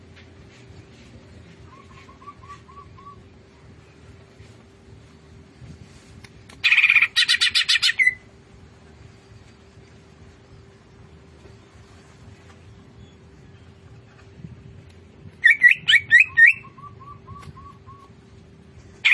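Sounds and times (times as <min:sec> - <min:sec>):
Greater green leafbird singing fast chattering notes: 0:01.6 - 0:03.3, 0:06.6 - 0:08.2, 0:15.4 - 0:18.2.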